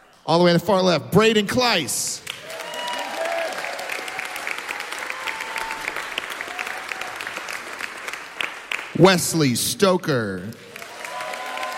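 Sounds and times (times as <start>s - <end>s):
speech: 0.3s - 2.3s, 9.0s - 10.7s
audience applause: 2.2s - 9.1s, 10.5s - 11.7s.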